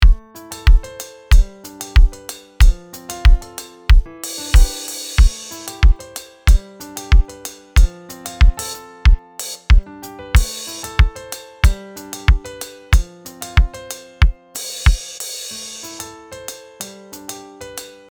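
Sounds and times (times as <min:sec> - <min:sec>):
kick drum: 0:00.0 - 0:12.4, 0:13.0 - 0:15.0.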